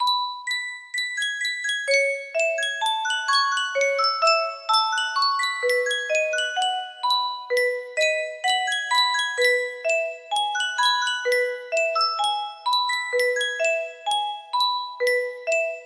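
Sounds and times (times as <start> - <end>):
Yunsheng custom tune music box: 0.0 - 15.8.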